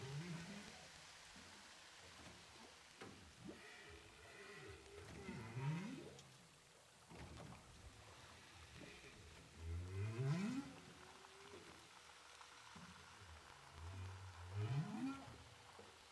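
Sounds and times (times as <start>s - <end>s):
humpback whale song recorded underwater with a hydrophone off Saint-Paul, Réunion: 0.0s - 1.8s, 3.4s - 6.2s, 8.1s - 15.8s.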